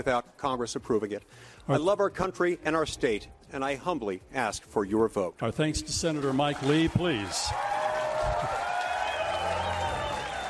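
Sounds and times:
speech: 0.0 - 8.6
crowd applauding: 6.0 - 10.4.

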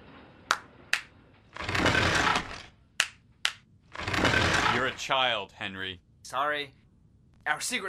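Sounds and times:
hand claps opening a secret alley entrance: 0.5 - 1.1, 3.0 - 3.6
rough grinding noise of secret alley entrance opening: 1.5 - 2.8, 3.9 - 5.2
speech: 5.0 - 6.8, 7.4 - 7.8.

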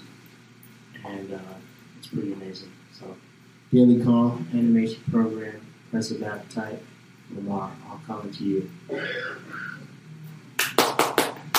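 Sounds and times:
speech: 1.1 - 9.9
sharp hand claps in studio: 10.6 - 11.5.

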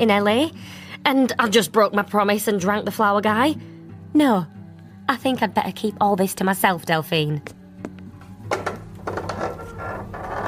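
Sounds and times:
speech: 0.0 - 7.6
door creaking: 8.4 - 10.4.

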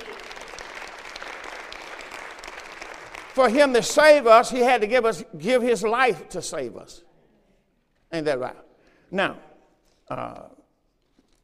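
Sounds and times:
audience clapping: 0.0 - 4.2
speech: 3.4 - 7.1, 8.1 - 9.5, 10.1 - 10.6.

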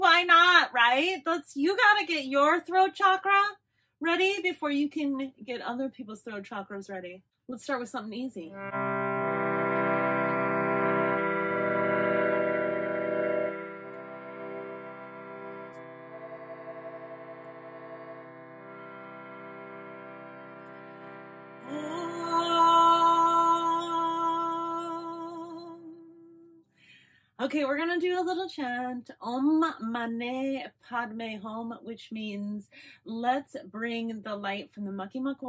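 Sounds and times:
speech: 0.2 - 9.0, 27.5 - 35.4
harmonium playing: 8.6 - 24.9.

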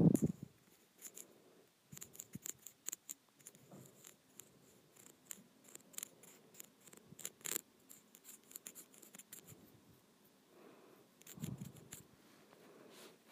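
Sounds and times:
rippled plastic being scratched: 0.1 - 1.3, 1.9 - 9.5, 11.2 - 12.1.

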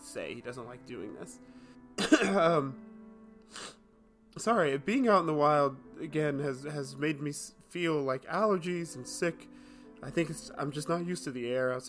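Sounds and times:
speech: 0.2 - 2.9, 3.5 - 3.8, 4.4 - 11.8
harsh raspy cough: 2.0 - 2.7.

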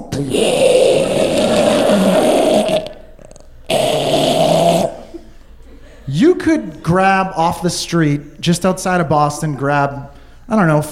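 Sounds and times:
speech: 0.2 - 0.7, 6.5 - 10.9
man imitating the breathing of a man falling asleep with rasping snores: 0.2 - 5.1.

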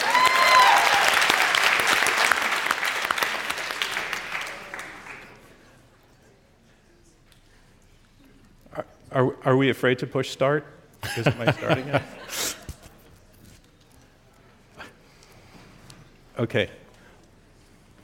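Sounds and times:
audience applause: 0.0 - 5.6
speech: 9.2 - 12.2, 16.4 - 16.8
laughter: 11.0 - 13.1.

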